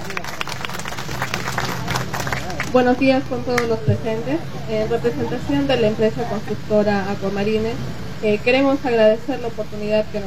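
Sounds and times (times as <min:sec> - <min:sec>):
audience applause: 0:00.0 - 0:02.9
speech: 0:02.7 - 0:10.2.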